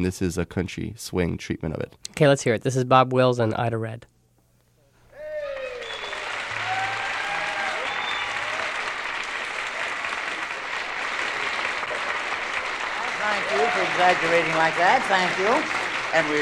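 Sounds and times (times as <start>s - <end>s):
speech: 0.0s - 4.1s, 14.0s - 16.4s
audience applause: 5.2s - 16.4s.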